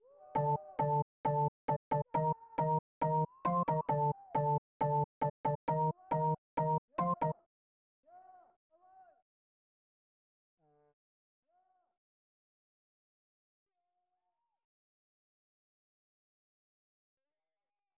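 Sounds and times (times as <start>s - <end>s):
organ music: 0.4s - 7.3s.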